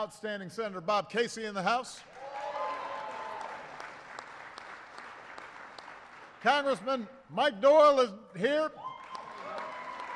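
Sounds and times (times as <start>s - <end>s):
speech: 0.0s - 2.3s, 6.4s - 8.8s
audience applause: 2.2s - 6.4s, 9.0s - 10.1s.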